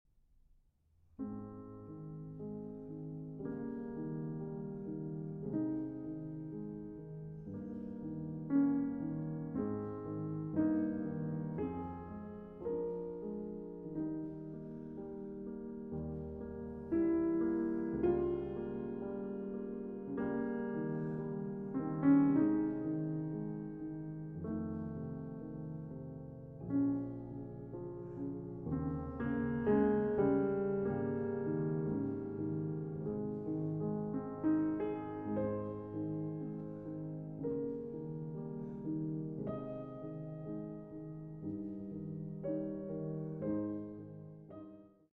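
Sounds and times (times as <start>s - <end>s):
slow piano sonata movement: 0.9s - 45.1s.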